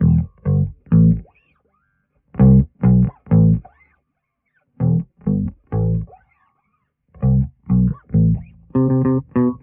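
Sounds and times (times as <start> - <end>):
phonk bass loop: 0.0 - 1.2, 2.4 - 3.7, 4.8 - 6.1, 7.2 - 9.6.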